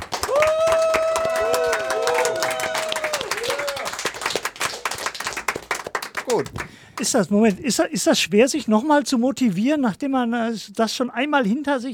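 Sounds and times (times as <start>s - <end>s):
audience applause: 0.0s - 6.8s
speech: 6.4s - 11.9s.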